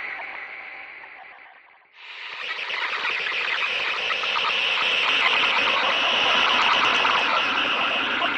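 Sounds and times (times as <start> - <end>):
weather radio noise: 2.0 - 8.3.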